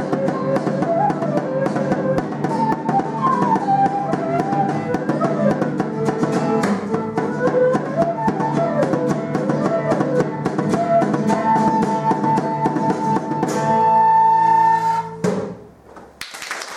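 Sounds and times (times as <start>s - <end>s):
quena flute playing at an elementary school music appreciation concert: 0.0s - 15.6s.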